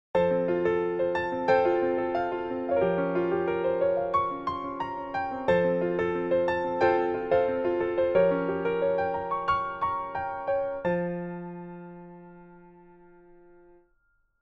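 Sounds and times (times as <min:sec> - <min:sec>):
beautiful piano music: 0:00.2 - 0:13.9.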